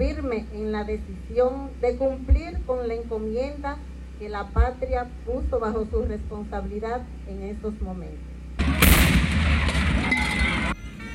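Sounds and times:
speech: 0.2 - 8.3
artillery cannon salute at a military honours ceremony: 8.6 - 10.7.

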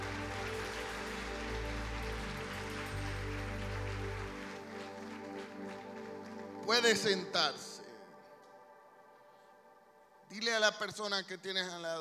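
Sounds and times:
audience applause: 0.0 - 7.3
speech: 6.7 - 7.7, 10.4 - 12.0.

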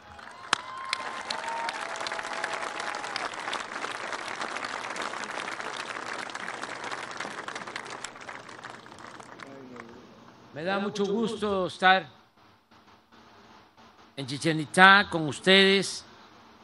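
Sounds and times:
crowd applause: 0.0 - 10.3
speech: 10.6 - 12.2, 14.2 - 16.1.

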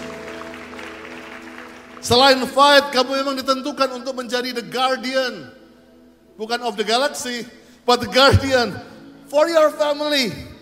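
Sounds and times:
audience applauding: 0.0 - 2.8
speech: 2.0 - 5.6, 6.4 - 10.5.

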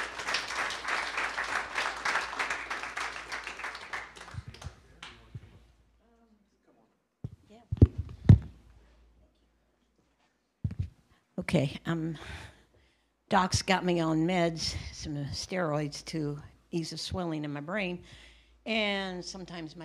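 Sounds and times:
audience applause welcoming a speaker to the stage: 0.0 - 5.3
speech: 11.5 - 12.5, 13.3 - 19.8.

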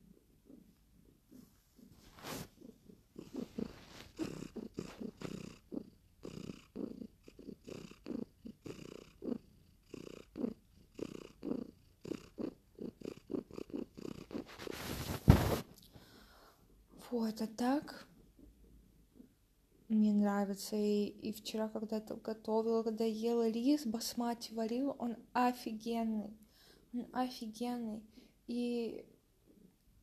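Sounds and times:
cat purring on the bed: 0.0 - 23.0
rustle or bump: 14.5 - 15.7
speech: 17.1 - 18.1, 20.0 - 29.1.

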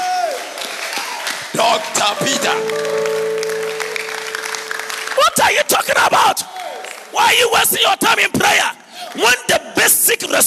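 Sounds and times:
audience clapping: 0.0 - 7.5
speech: 1.6 - 3.1, 5.4 - 6.5, 7.1 - 10.4.

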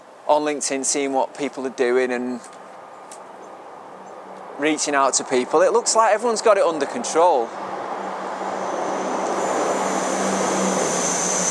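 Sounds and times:
speech: 0.3 - 2.6, 4.6 - 7.8
train passing: 6.4 - 11.4.

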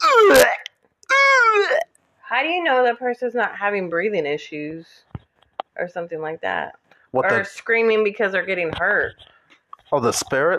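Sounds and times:
person imitating vomiting: 0.0 - 1.8
speech: 2.4 - 5.1, 5.8 - 9.3, 9.9 - 10.5.

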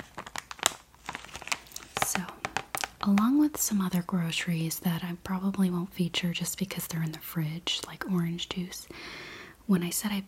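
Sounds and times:
packaging crinkling: 0.0 - 4.0
speech: 2.2 - 2.4, 3.0 - 10.2.

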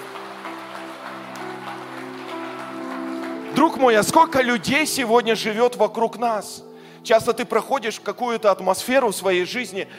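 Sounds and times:
audience applause: 0.0 - 4.7
speech: 3.6 - 9.9.

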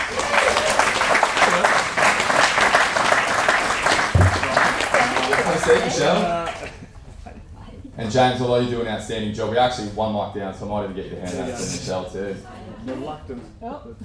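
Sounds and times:
audience round of applause: 0.0 - 6.8
speech: 5.7 - 6.6, 8.1 - 14.0.

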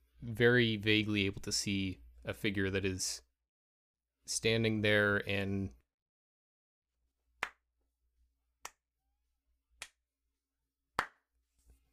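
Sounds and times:
speech: 0.2 - 3.3, 4.3 - 5.8
slow clapping: 7.4 - 7.6, 8.6 - 8.8, 9.8 - 10.0, 11.0 - 11.2.

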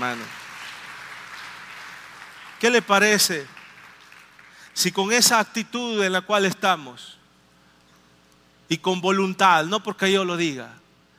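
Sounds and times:
speech: 0.0 - 0.4, 2.6 - 3.6, 4.8 - 7.2, 8.7 - 10.8
audience applause: 0.0 - 4.8.

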